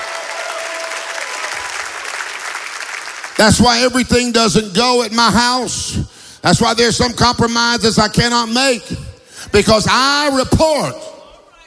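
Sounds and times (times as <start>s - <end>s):
church congregation clapping in praise: 0.0s - 4.4s
speech: 3.4s - 11.0s.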